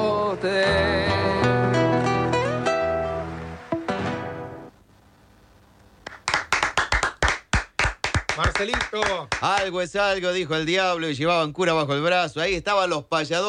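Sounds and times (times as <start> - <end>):
strummed guitar chords: 0.0 - 4.7
speech: 0.3 - 1.1, 8.6 - 13.4
audience applause: 6.0 - 9.8.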